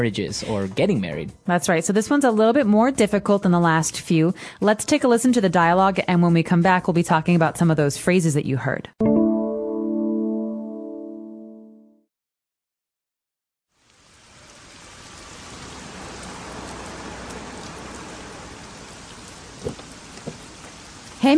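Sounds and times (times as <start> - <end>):
speech: 0.0 - 9.1
musical jingle: 9.0 - 12.0
heavy rain pouring: 13.7 - 21.3
drips: 13.8 - 21.3.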